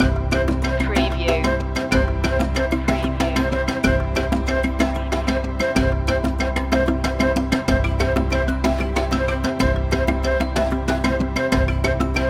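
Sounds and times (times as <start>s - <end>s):
African spirit music loop: 0.0s - 12.2s.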